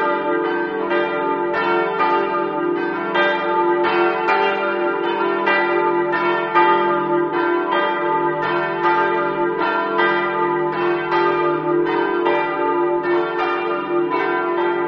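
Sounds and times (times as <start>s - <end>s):
bells ringing in Rosazzo: 0.0s - 14.8s.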